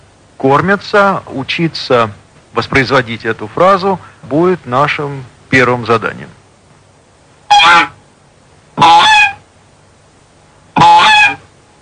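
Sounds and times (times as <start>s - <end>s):
speech: 0.4s - 6.4s, 7.6s - 8.0s
goose honking: 7.5s - 8.0s, 8.8s - 9.4s, 10.8s - 11.5s.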